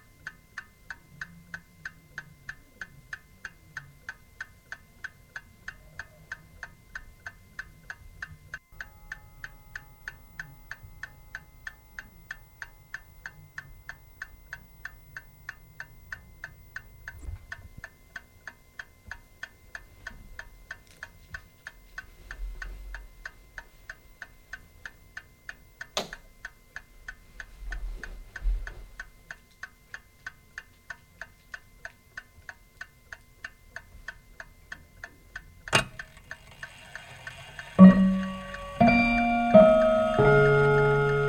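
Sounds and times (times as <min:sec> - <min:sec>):
old clock with chimes: 0:35.8 - 0:41.2.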